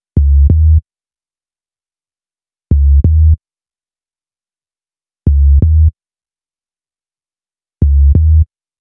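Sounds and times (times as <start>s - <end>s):
hip-hop bass: 0.2s - 0.8s, 2.7s - 3.4s, 5.3s - 5.9s, 7.8s - 8.4s.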